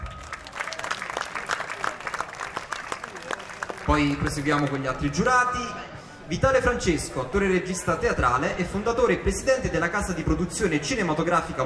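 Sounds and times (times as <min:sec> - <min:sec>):
audience applause: 0:00.0 - 0:05.4
speech: 0:03.9 - 0:11.6.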